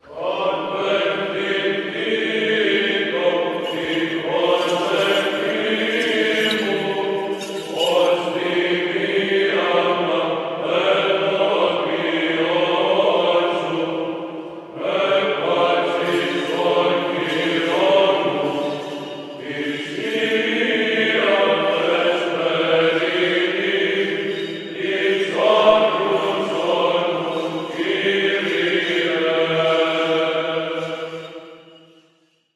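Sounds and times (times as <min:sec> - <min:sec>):
choir singing: 0:00.0 - 0:32.0.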